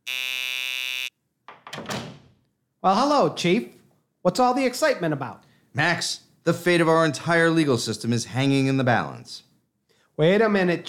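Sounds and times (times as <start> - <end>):
door entry buzzer: 0.0 - 1.2
door opening: 1.5 - 2.4
speech: 2.8 - 9.5, 10.2 - 10.8.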